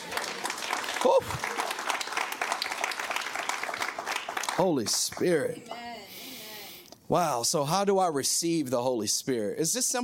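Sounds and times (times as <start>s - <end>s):
audience applause: 0.0s - 5.6s
speech: 1.0s - 1.6s, 4.6s - 5.8s, 7.1s - 10.0s.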